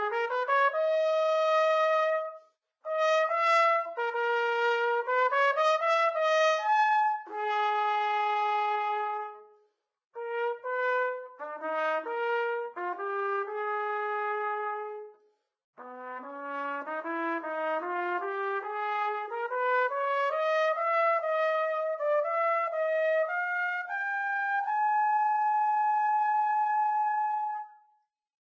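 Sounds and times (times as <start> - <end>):
trumpet romance melody: 0.0 - 9.5, 10.2 - 15.2, 15.8 - 27.7.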